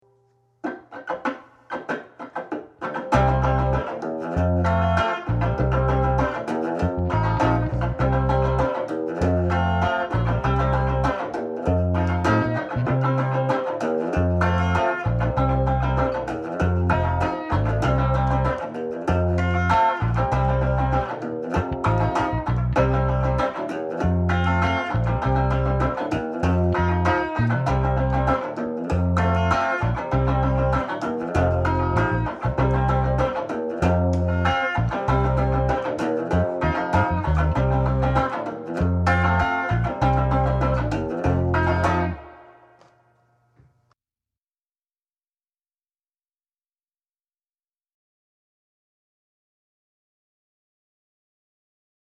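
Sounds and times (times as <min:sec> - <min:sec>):
play-along bass: 0:03.0 - 0:42.4.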